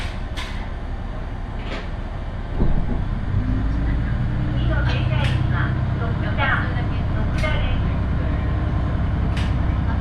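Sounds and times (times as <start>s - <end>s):
one-car railbus engine and running rumble on the Ise Railway: 0.0s - 9.9s
passenger voices: 3.7s - 9.9s.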